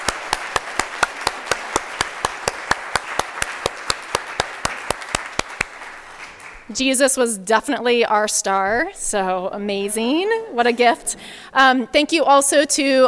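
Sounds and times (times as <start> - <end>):
audience applauding: 0.0 - 6.7
speech: 6.7 - 13.0.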